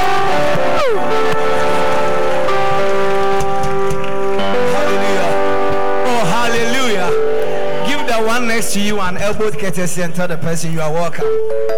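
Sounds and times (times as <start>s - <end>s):
audience clapping: 0.0s - 8.6s
speech: 8.6s - 11.7s.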